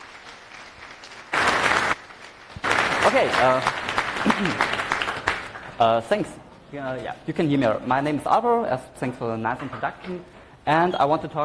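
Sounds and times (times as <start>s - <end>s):
audience applause: 0.0s - 5.7s
speech: 3.1s - 4.8s, 5.8s - 11.4s.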